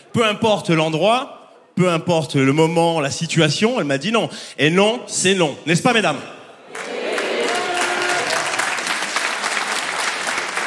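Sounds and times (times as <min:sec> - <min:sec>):
speech: 0:00.2 - 0:06.8
audience applauding: 0:06.7 - 0:10.6
faint cheer or whoop: 0:06.8 - 0:09.1.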